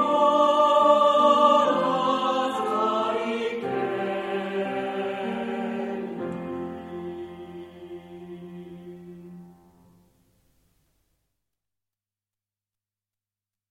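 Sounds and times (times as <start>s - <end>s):
people singing a song in unison: 0.0s - 9.8s.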